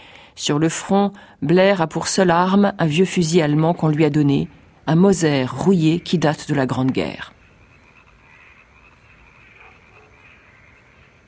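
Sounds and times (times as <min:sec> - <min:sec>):
speech: 0:00.4 - 0:07.4
chorus of frogs croaking from marshes in the mountains of Aragon: 0:02.4 - 0:11.2.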